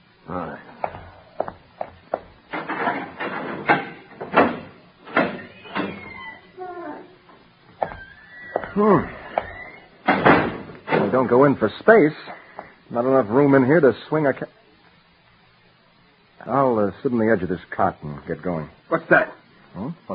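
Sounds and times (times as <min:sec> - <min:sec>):
wooden door opening with knocks and clicks: 0:01.8 - 0:06.5, 0:07.8 - 0:11.4
speech: 0:08.8 - 0:09.1, 0:11.2 - 0:14.6, 0:16.4 - 0:20.1.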